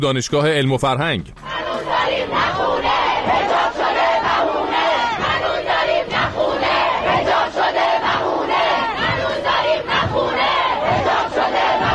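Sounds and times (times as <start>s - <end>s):
speech: 0.0s - 1.5s
crowd chanting protest slogans: 1.5s - 11.9s.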